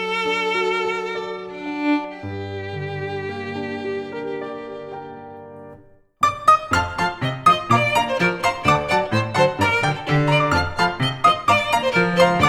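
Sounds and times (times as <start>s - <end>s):
instrumental violin and piano piece: 0.0s - 12.4s.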